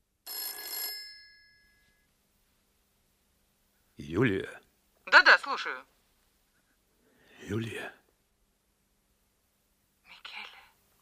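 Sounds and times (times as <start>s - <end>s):
telephone ringing with a bright metallic bell: 0.3s - 2.1s
speech: 4.1s - 4.6s, 5.5s - 6.0s, 7.4s - 8.0s.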